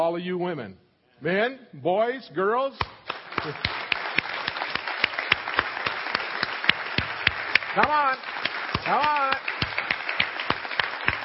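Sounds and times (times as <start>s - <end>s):
speech: 0.1s - 3.8s, 7.8s - 9.4s
audience applause: 3.1s - 11.2s.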